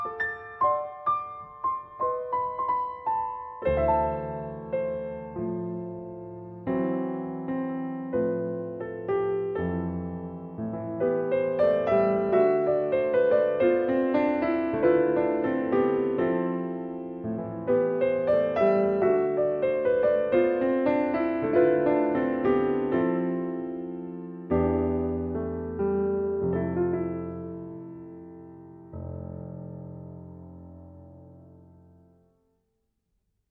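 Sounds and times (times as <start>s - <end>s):
slow piano piece played by a concert pianist: 0.0s - 32.4s.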